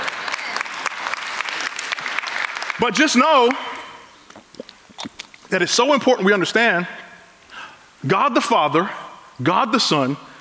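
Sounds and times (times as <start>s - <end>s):
audience clapping: 0.0s - 3.8s
speech: 2.8s - 3.7s, 5.5s - 7.0s, 8.0s - 10.3s.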